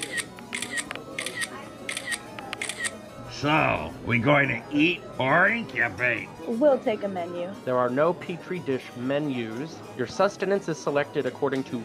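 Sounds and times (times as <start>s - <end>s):
camera shutter clicks taking a group selfie at a restaurant: 0.0s - 3.0s
faint talk: 0.0s - 7.6s
speech: 3.4s - 11.8s.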